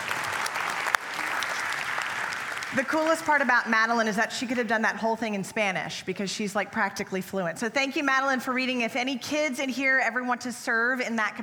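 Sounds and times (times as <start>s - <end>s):
audience applause: 0.0s - 3.4s
speech: 2.7s - 11.4s.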